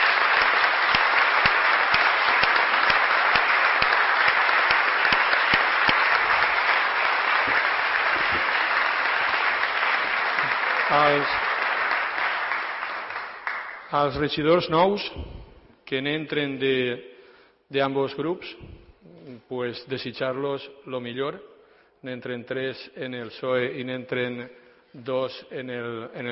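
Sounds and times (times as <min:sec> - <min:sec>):
audience applause: 0:00.0 - 0:13.9
speech: 0:11.0 - 0:11.4, 0:13.9 - 0:17.1, 0:17.7 - 0:18.8, 0:19.5 - 0:26.3.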